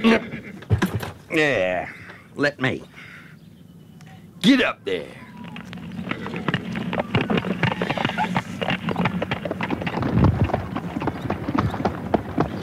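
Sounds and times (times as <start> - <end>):
low rumbling hum: 0.0 - 12.6
horse hooves pulling a light sulky: 0.4 - 1.3, 5.2 - 12.6
speech: 1.3 - 3.0, 4.4 - 5.2
slight breeze of wind noise: 5.2 - 12.6.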